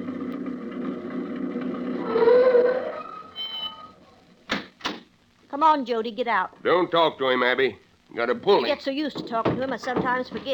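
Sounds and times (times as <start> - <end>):
old truck engine pulling up: 0.0 - 2.9
speech: 5.6 - 10.5.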